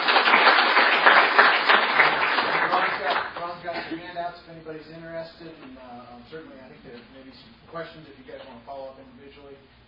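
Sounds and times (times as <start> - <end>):
audience applause: 0.0 - 3.4
speech: 4.2 - 9.8.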